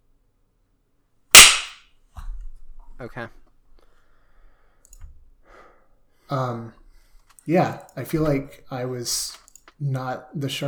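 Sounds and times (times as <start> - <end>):
hand clap for timestamp sync: 1.4 - 1.8
speech: 3.0 - 3.4, 6.3 - 6.8, 7.4 - 10.6.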